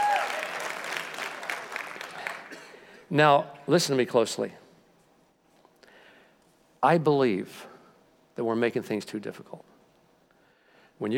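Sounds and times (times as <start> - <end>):
weak audience applause: 0.0 - 2.8
speech: 3.1 - 4.6, 6.8 - 7.7, 8.4 - 9.7, 11.0 - 11.1.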